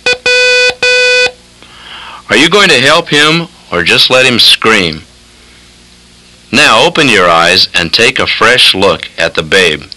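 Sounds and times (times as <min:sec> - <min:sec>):
Morse code tones: 0:00.0 - 0:01.3
speech: 0:02.3 - 0:05.1, 0:06.5 - 0:09.9.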